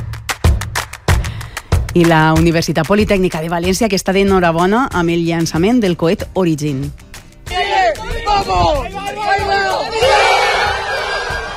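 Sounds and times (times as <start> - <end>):
speech: 2.0 - 7.0, 8.4 - 10.4
Universitat Politècnica de València students cheering at the Origin rocket launch: 7.5 - 11.5.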